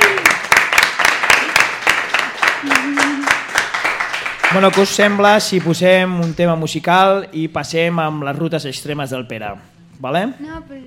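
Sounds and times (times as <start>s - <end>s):
small group applauding: 0.0s - 6.4s
faint voice murmuring: 2.6s - 3.4s
speech: 4.5s - 10.8s.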